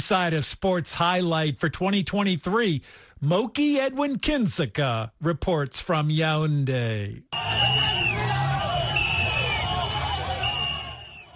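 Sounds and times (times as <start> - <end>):
speech: 0.1 - 8.2
volleyball fans applauding and cheering in Yaoundé: 7.3 - 11.3.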